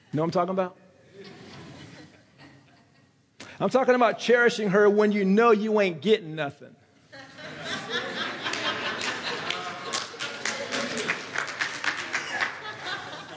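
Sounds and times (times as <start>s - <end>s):
speech: 0.1s - 1.3s, 3.6s - 6.8s
laughter: 1.1s - 3.2s, 7.1s - 13.3s
women clapping: 8.4s - 13.0s.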